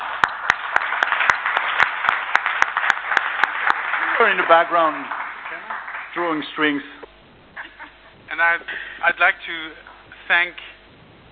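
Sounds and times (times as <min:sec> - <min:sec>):
audience applause: 0:00.0 - 0:06.8
speech: 0:04.2 - 0:05.2, 0:06.2 - 0:07.0, 0:08.4 - 0:10.7.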